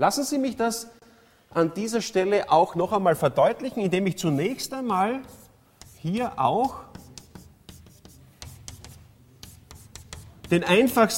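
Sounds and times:
speech: 0.0s - 5.4s, 6.0s - 6.9s, 10.5s - 11.1s
writing the formula of ethane on a blackboard: 4.2s - 11.1s.

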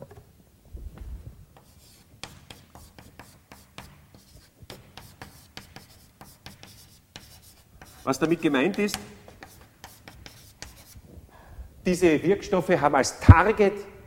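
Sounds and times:
chalk scratching and tapping on a blackboard as a lecturer writes: 1.5s - 11.1s
speech: 8.0s - 9.1s, 11.9s - 14.0s.

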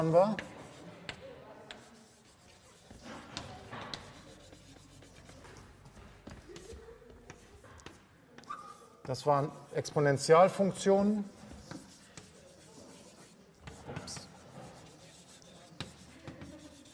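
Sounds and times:
speech: 0.0s - 0.5s, 9.1s - 11.4s
writing on a board during a lecture on linearizing transformations: 0.0s - 16.9s
rubbing and knocks: 1.7s - 6.7s, 11.4s - 16.9s.

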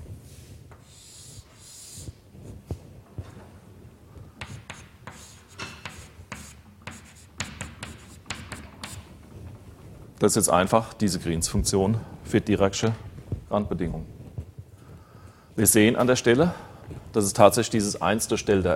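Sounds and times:
writing on a board during a physics lecture: 0.8s - 2.2s, 4.4s - 9.1s
speech: 10.2s - 14.2s, 15.6s - 18.7s.

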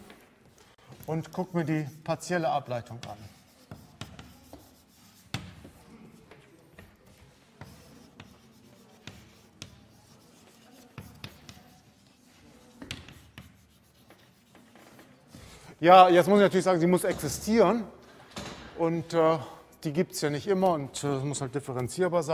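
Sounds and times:
writing on a board during a mathematics lecture on partial derivatives: 1.0s - 15.4s
speech: 1.1s - 3.4s, 15.8s - 18.0s, 18.8s - 22.3s.

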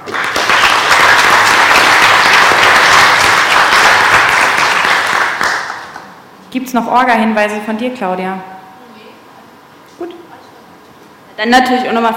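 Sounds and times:
audience applause: 0.0s - 6.2s
speech: 6.6s - 8.5s, 11.4s - 12.1s.

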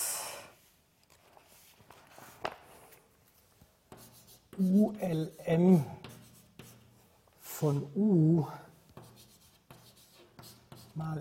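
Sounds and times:
writing on a board during a maths lecture: 3.9s - 7.6s, 8.8s - 11.2s
speech: 4.6s - 6.0s, 7.6s - 8.7s, 11.0s - 11.2s.

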